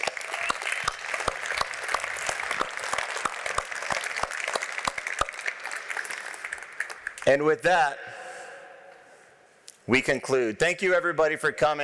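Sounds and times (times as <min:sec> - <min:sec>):
audience applause: 0:00.0 - 0:07.2
speech: 0:07.3 - 0:08.2, 0:09.9 - 0:11.8.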